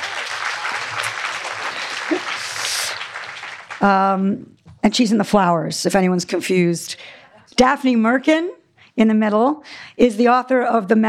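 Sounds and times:
crowd applauding: 0.0 - 4.0
speech: 3.8 - 11.0.

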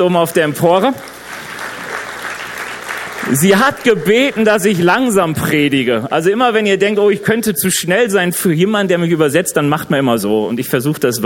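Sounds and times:
speech: 0.0 - 1.2, 3.3 - 11.2
crowd clapping: 0.0 - 5.6.

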